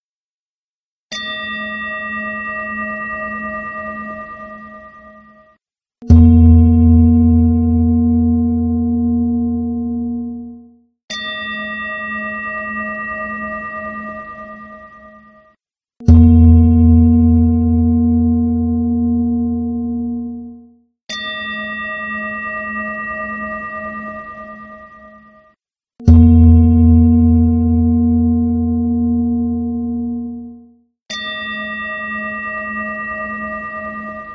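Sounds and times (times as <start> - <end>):
bell low and high tones for cardiac coherence: 6.1 - 10.8, 16.1 - 20.7, 26.1 - 32.0.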